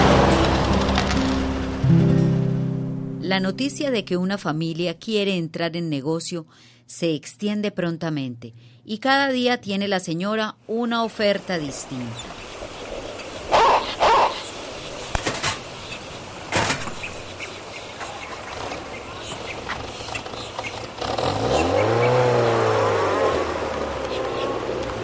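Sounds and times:
touring car engine running: 0:00.0 - 0:01.8, 0:18.6 - 0:25.0
touring car arriving: 0:00.0 - 0:03.2, 0:15.4 - 0:25.0
speech: 0:03.3 - 0:12.4.

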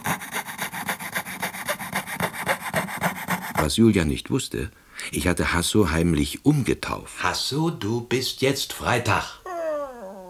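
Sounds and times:
fretsaw sawing wood: 0:00.0 - 0:03.7
speech: 0:03.6 - 0:09.4.

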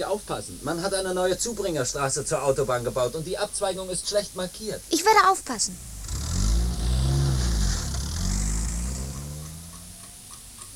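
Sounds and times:
speech: 0:00.0 - 0:06.0
car driving away with engine revving: 0:05.7 - 0:10.4.

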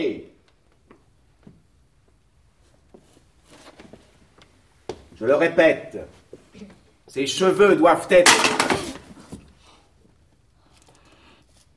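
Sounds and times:
speech: 0:05.2 - 0:06.2, 0:07.1 - 0:08.7
school slate dropped on floor: 0:08.2 - 0:09.2.

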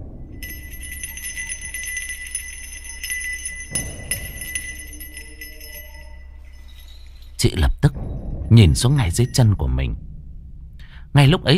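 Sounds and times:
small bell ringing: 0:00.0 - 0:07.5, 0:08.8 - 0:09.9
speech: 0:07.4 - 0:10.0, 0:11.1 - 0:11.5.

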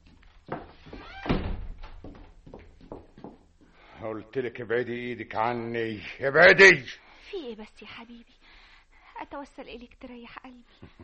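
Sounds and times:
door swinging shut with a heavy thunk: 0:01.0 - 0:02.0
speech: 0:04.0 - 0:08.4, 0:09.2 - 0:11.0.

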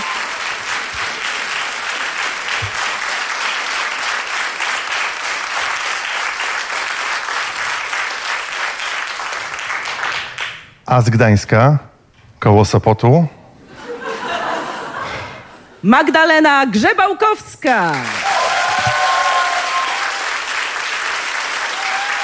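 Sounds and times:
audience applause as a guest is introduced: 0:00.0 - 0:10.6, 0:17.9 - 0:22.2
speech: 0:10.9 - 0:13.4, 0:15.8 - 0:18.2
laughter: 0:13.7 - 0:15.7.

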